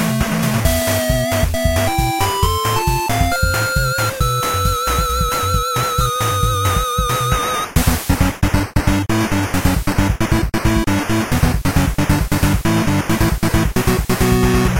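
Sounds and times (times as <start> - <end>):
boss battle background music: 0.0 - 14.7.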